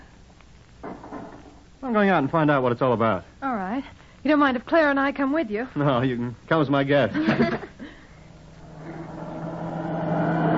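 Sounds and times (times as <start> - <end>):
speech: 1.8 - 7.7
laughter: 7.1 - 8.0
cars whizzing by: 8.6 - 10.5.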